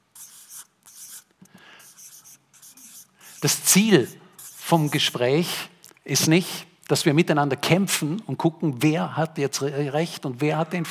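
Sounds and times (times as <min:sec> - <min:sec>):
scratchy handwriting strokes writing a single word: 0:00.1 - 0:05.2
speech: 0:03.4 - 0:10.8.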